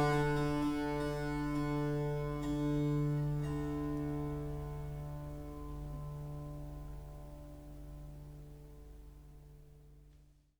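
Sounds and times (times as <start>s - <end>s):
curved monochord tuned to D: 0.0s - 9.8s.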